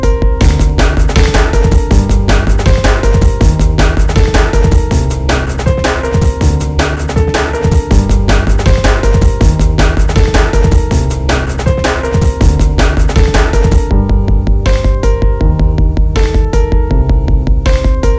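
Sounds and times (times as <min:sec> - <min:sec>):
piano: 0:00.0 - 0:18.1
drum: 0:00.4 - 0:18.1.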